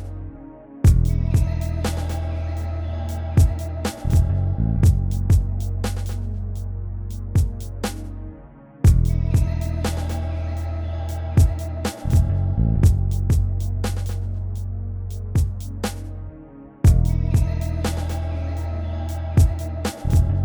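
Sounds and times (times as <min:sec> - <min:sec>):
music beat: 0:00.9 - 0:02.3, 0:03.1 - 0:08.1, 0:08.9 - 0:10.3, 0:11.1 - 0:16.1, 0:16.9 - 0:18.3, 0:19.1 - 0:20.4.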